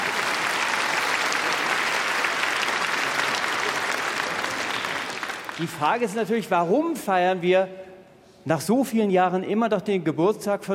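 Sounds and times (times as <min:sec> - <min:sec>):
audience applause: 0:00.0 - 0:06.1
speech: 0:05.6 - 0:07.8, 0:08.4 - 0:10.7.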